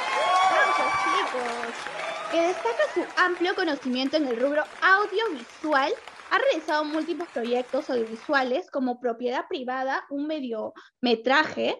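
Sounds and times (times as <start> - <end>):
cheers and whoops: 0.0 - 3.7
group clapping: 0.0 - 8.6
speech: 1.3 - 11.7.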